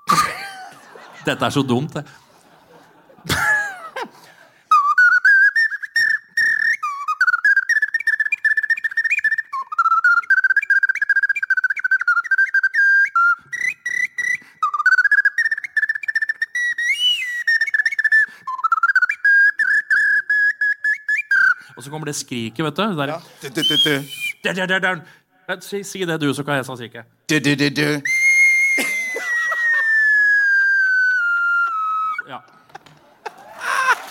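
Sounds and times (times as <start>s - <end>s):
laughter: 0.1s - 4.7s, 28.8s - 30.4s, 32.6s - 34.0s
speech: 1.2s - 2.2s, 22.0s - 28.1s
clay ocarina playing a lively melody: 4.7s - 22.2s, 28.0s - 32.5s.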